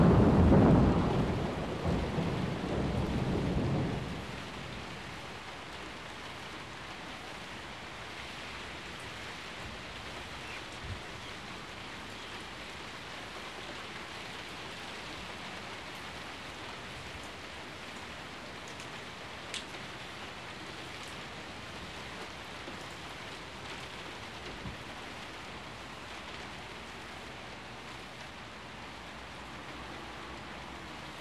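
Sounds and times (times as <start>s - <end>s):
rolling thunder: 0.0s - 5.2s
heavy rain: 0.0s - 31.1s.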